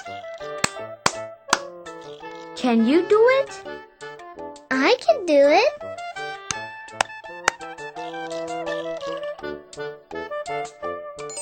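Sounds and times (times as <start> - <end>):
hands clapping: 0.6 - 1.7
speech: 2.6 - 3.7, 4.7 - 5.9.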